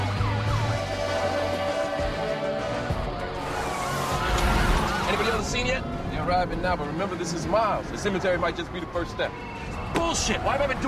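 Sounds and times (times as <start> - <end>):
sirens of fire trucks and police motorcycles racing in a convoy at night: 0.0 - 10.8
speech: 5.6 - 10.8.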